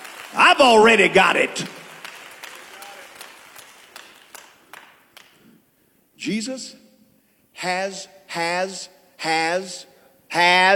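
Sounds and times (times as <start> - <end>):
audience clapping hands in rhythm: 0.0 - 5.7
speech: 0.3 - 1.8, 6.2 - 6.8, 7.6 - 10.7.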